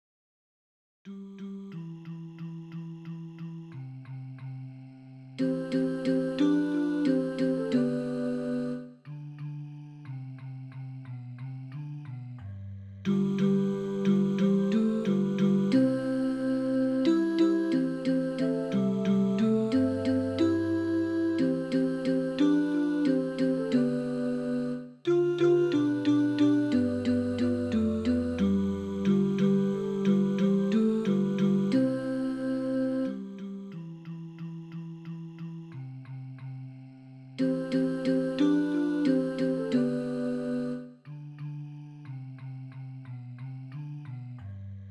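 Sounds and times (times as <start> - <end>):
tenor singing: 5.4 - 8.8, 13.1 - 33.2, 37.4 - 40.9.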